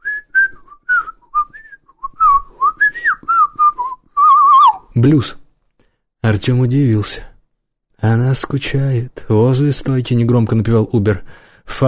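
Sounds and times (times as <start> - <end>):
soft melodic whistling of a tune: 0.0 - 4.8
speech: 5.0 - 5.4, 6.2 - 7.3, 8.0 - 11.8.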